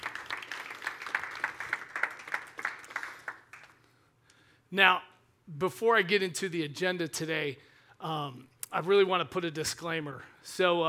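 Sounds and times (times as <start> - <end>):
audience round of applause: 0.0 - 3.8
speech: 4.7 - 10.8.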